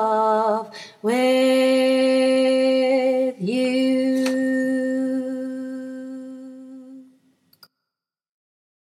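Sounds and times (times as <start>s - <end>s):
tenor singing: 0.0s - 7.1s.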